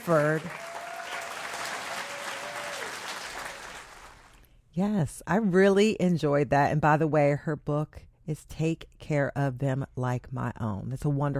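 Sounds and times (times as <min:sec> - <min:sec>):
speech: 0:00.0 - 0:00.6, 0:04.8 - 0:11.3
audience applause: 0:00.0 - 0:04.4.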